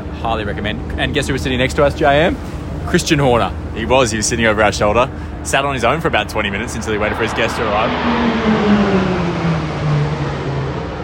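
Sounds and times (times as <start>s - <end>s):
speech: 0.2s - 9.0s
aerobatic military jet flying over: 5.3s - 11.0s.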